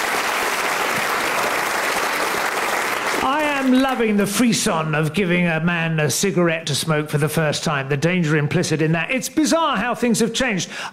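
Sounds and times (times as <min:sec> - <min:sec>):
audience applause: 0:00.0 - 0:04.1
speech: 0:03.6 - 0:10.9.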